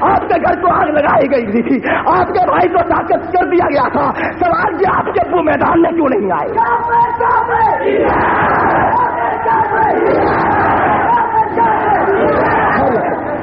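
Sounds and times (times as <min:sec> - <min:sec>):
speech: 0:00.4 - 0:09.0
crowd chanting slogans: 0:06.6 - 0:13.4.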